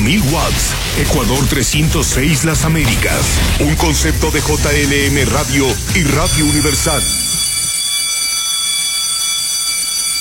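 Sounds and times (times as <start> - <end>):
speech: 0.1 - 7.2
electric bell ringing: 6.2 - 10.2.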